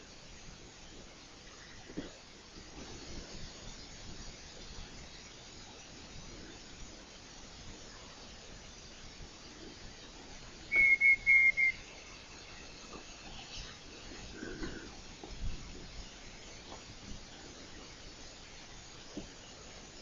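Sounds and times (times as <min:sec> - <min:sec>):
background hiss: 0:00.0 - 0:20.0
night parrot whistles: 0:10.7 - 0:11.8.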